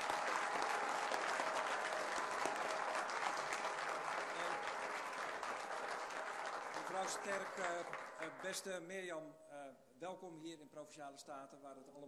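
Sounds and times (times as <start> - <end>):
applause in a provincial council chamber: 0.0 - 8.8
speech: 7.0 - 12.0.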